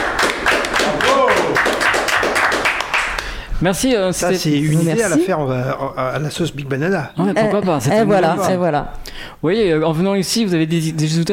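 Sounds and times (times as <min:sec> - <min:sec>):
audience applause: 0:00.0 - 0:03.4
speech: 0:03.6 - 0:11.3.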